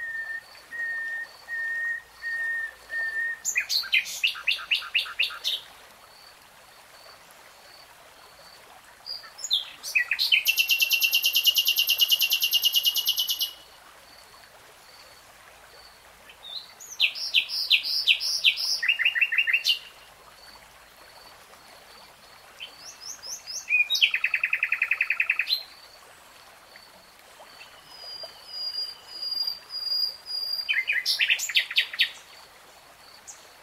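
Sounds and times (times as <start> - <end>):
faint high whistles: 0.0 - 3.4
nightingale song: 0.0 - 5.7, 9.0 - 13.7, 16.3 - 20.0, 22.6 - 25.8, 27.4 - 32.4.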